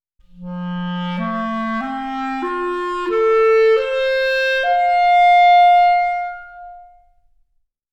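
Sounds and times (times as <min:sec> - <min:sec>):
clarinet: 0:00.2 - 0:07.4.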